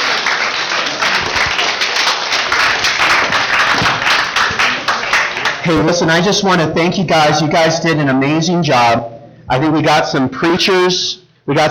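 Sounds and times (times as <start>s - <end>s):
audience applause: 0.0s - 6.0s
speech: 5.7s - 11.7s.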